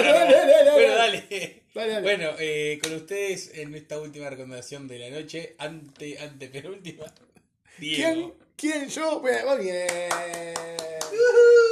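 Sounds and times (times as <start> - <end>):
laughter: 0.0 - 1.6
speech: 1.3 - 11.7
one person clapping alone: 9.8 - 11.3.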